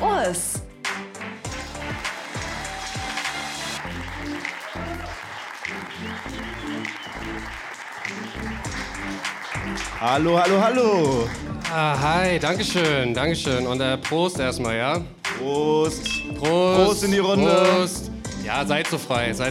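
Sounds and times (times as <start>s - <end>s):
loud rhythmic music: 0.0s - 19.4s
audience clapping and cheering: 0.9s - 13.2s, 16.4s - 19.4s
shouts from the crowd: 2.3s - 6.9s
speech: 10.0s - 19.4s.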